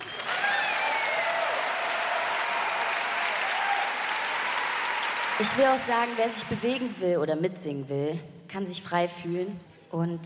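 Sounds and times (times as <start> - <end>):
concert audience applause: 0.0 - 6.6
speech: 5.4 - 10.2.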